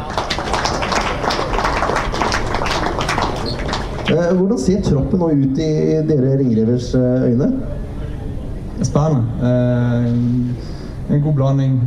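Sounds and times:
applause: 0.0 - 4.4
speech: 4.1 - 7.9, 8.8 - 11.8.

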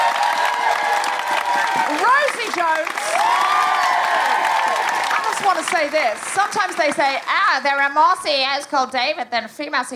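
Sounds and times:
audience applause: 0.0 - 8.0
speech: 5.6 - 9.9.

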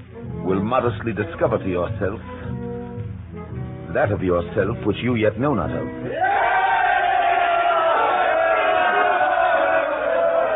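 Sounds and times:
speech: 0.5 - 2.4, 3.9 - 6.2
crowd shouting: 6.1 - 10.5.

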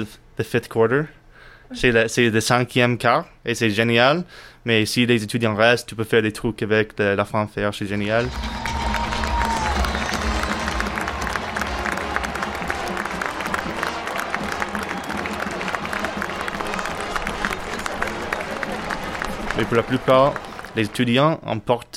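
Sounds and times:
speech: 0.0 - 8.6, 19.6 - 21.9
football stadium crowd cheering and applauding: 8.2 - 21.3.

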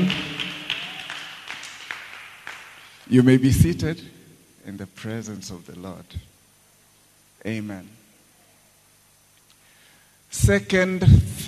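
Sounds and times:
audience clapping: 0.0 - 3.0
speech: 3.1 - 6.3, 7.4 - 8.0, 10.3 - 11.4.

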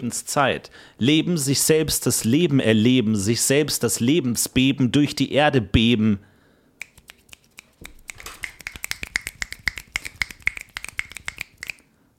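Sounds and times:
speech: 0.0 - 6.3
audience applauding by finger snapping: 6.8 - 11.9.

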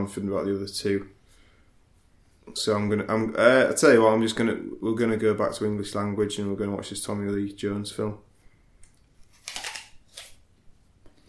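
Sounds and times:
speech: 0.0 - 1.2, 2.5 - 8.3
someone crunching into an apple: 9.0 - 10.4.

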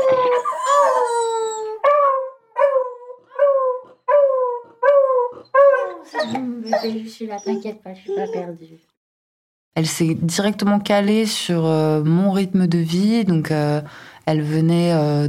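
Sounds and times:
dog howling along with its owner's singing: 0.0 - 8.5
speech: 6.2 - 8.9, 9.8 - 15.2.

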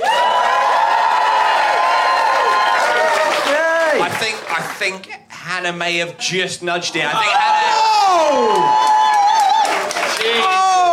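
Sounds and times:
crowd whooping and shouting: 0.0 - 4.1, 7.1 - 10.9
crowd applauding: 0.0 - 5.0, 8.0 - 10.9
speech: 4.8 - 9.0.

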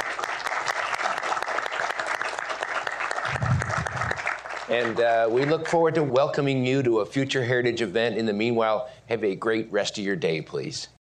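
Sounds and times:
audience applause: 0.0 - 5.8
speech: 4.7 - 11.0.

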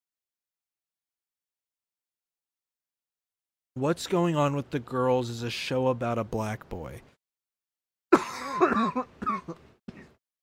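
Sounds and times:
speech: 3.8 - 7.1, 8.7 - 9.6
person coughing from energy drink stuck in the throat: 8.1 - 10.2
throat clearing from energy drink stuck in the throat: 8.2 - 10.2.

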